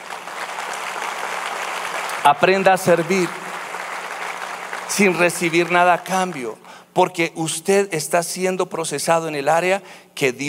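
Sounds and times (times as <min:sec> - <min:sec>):
audience applause: 0:00.0 - 0:06.6
speech: 0:02.3 - 0:03.4, 0:04.9 - 0:10.4.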